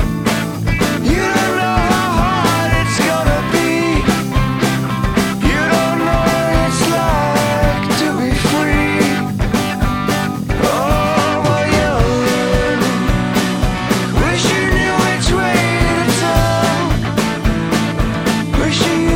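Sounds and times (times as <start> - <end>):
drums: 0.0 - 19.1.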